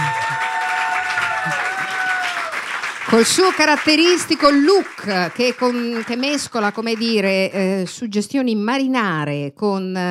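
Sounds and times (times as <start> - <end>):
audience applause: 0.0 - 7.5
speech: 3.1 - 10.1.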